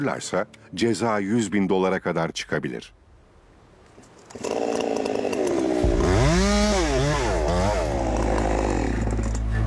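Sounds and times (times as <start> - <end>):
speech: 0.0 - 3.0, 4.3 - 4.6
chainsaw making an undercut in a tree: 4.2 - 9.5.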